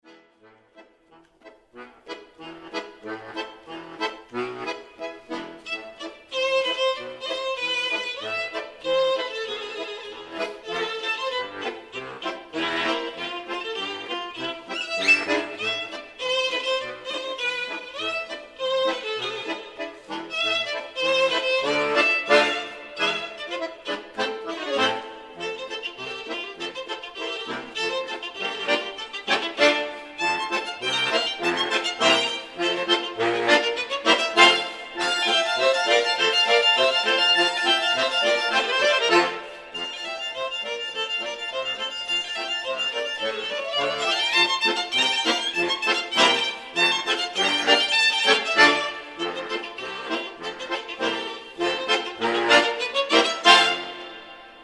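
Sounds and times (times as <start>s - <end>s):
polka music: 0.0s - 54.6s.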